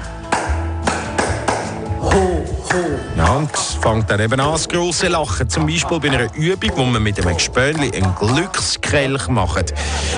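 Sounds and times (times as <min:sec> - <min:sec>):
group clapping hands together: 0:00.2 - 0:02.9
speech: 0:02.0 - 0:10.1.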